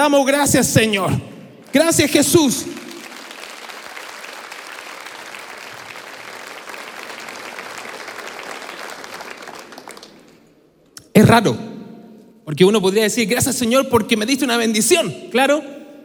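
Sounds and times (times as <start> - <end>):
speech: 0.0 - 2.8, 11.2 - 11.7, 12.5 - 15.8
audience applauding: 1.6 - 10.6.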